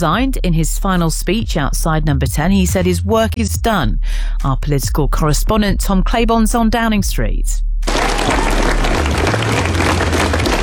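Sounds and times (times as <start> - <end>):
speech: 0.0 - 8.4
crowd applause: 7.9 - 10.6.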